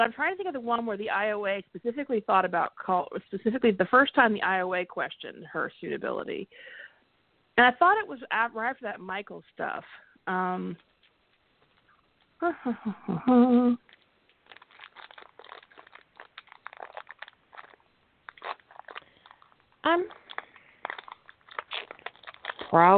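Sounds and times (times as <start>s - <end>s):
speech: 0.0s - 6.8s, 7.6s - 10.9s, 12.4s - 13.8s, 19.8s - 20.2s, 22.7s - 22.9s
granola bar wrapper being opened: 13.9s - 22.9s.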